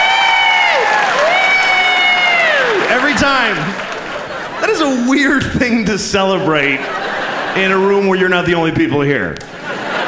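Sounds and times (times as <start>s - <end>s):
high sustained cheer: 0.0s - 4.7s
audience applauding: 0.0s - 5.3s
laughter: 2.5s - 8.8s, 9.4s - 10.0s
speech: 3.3s - 3.8s, 4.6s - 10.0s.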